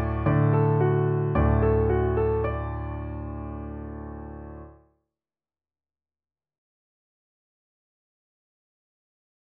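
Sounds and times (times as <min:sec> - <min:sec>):
piano backing track: 0:00.0 - 0:04.7.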